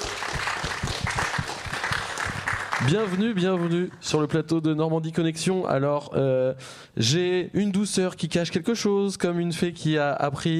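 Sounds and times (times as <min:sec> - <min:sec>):
studio audience applause: 0:00.0 - 0:04.0
speech: 0:02.8 - 0:10.5.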